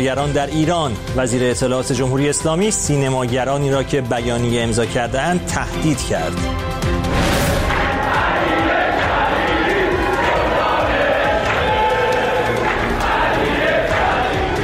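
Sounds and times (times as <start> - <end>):
speech: 0.0 - 6.9
spectators cheering at Azadi Stadium: 7.4 - 14.6.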